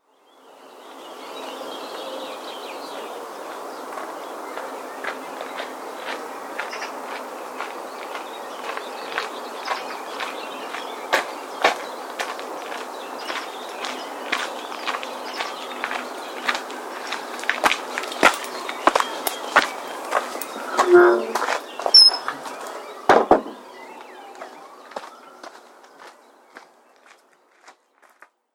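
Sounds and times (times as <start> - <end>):
footsteps on a gravel path: 3.9 - 22.8, 23.5 - 28.3
wooden gate opening: 20.4 - 22.4.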